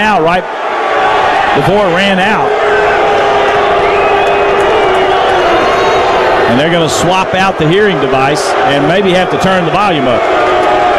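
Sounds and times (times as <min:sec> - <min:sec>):
speech: 0:00.0 - 0:00.6, 0:01.5 - 0:02.9, 0:06.5 - 0:10.5
loud arena crowd cheering: 0:00.0 - 0:10.9
whoops: 0:02.5 - 0:06.5.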